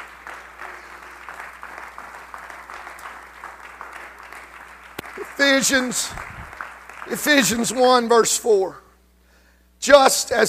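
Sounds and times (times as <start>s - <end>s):
group clapping hands: 0.0s - 8.2s
speech: 5.4s - 6.3s, 7.1s - 8.8s, 9.8s - 10.4s.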